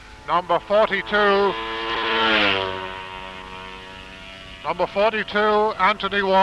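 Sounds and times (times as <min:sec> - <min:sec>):
Greaves racing motorcycle passing at the Manx Grand Prix: 0:00.0 - 0:06.4
speech: 0:00.3 - 0:02.6, 0:04.6 - 0:06.4.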